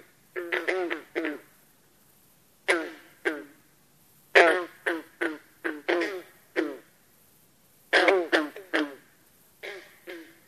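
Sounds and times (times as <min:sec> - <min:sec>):
Rana clamitans green frog calls: 0:00.0 - 0:01.6, 0:02.6 - 0:03.7, 0:04.3 - 0:07.0, 0:07.9 - 0:10.4.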